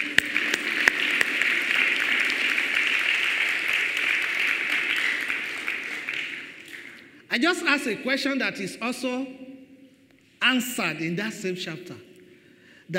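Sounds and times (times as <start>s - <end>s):
people clapping as an offering to God: 0.0s - 7.2s
speech: 7.4s - 9.4s, 10.4s - 12.1s.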